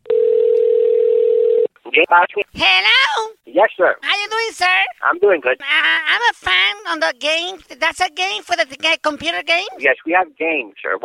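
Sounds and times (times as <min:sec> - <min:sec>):
telephone dial tone of outgoing call: 0:00.0 - 0:01.7
speech: 0:02.1 - 0:11.0.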